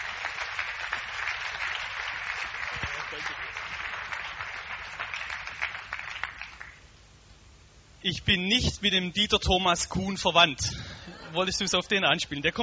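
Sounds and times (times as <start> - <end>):
audience applause: 0.0 - 6.8
speech: 8.0 - 12.6.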